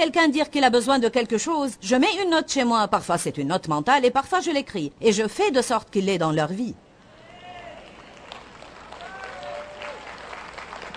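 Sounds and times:
speech: 0.0s - 6.9s
audience clapping: 7.8s - 10.9s.

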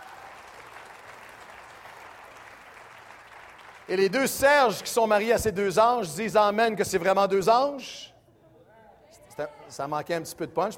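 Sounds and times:
loud applause: 0.0s - 5.2s
speech: 3.9s - 8.1s, 9.4s - 10.7s.

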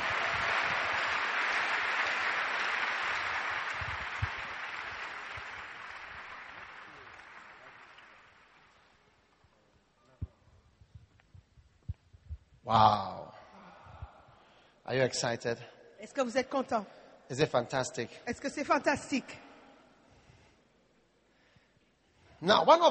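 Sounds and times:
crowd clapping: 0.0s - 9.1s
speech: 12.7s - 13.1s, 14.9s - 19.4s, 22.4s - 22.9s.

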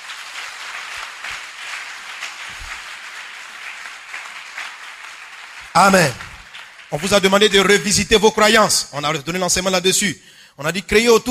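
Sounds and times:
audience applauding: 0.0s - 8.6s
speech: 5.8s - 6.2s, 6.9s - 11.2s.

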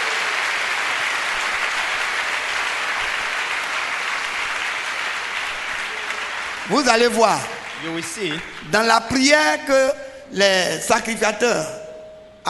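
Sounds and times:
audience applause: 0.0s - 9.0s
speech: 6.7s - 11.8s.

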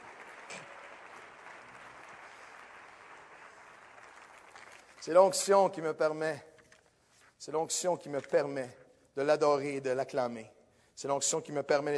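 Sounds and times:
audience applauding: 0.0s - 5.2s
speech: 5.0s - 6.5s, 7.4s - 11.9s.

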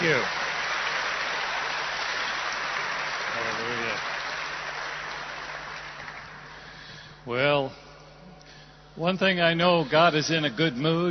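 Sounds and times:
audience applause: 0.0s - 6.8s
speech: 0.1s - 0.4s, 7.2s - 7.8s, 9.0s - 11.0s.

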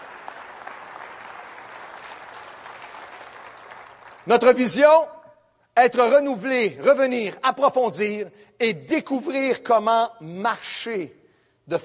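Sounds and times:
audience applauding: 0.0s - 4.5s
speech: 4.2s - 5.1s, 5.8s - 11.8s.

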